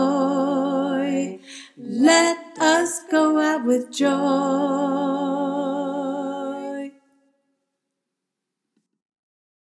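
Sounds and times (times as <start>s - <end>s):
alto choir singing: 0.0s - 6.9s.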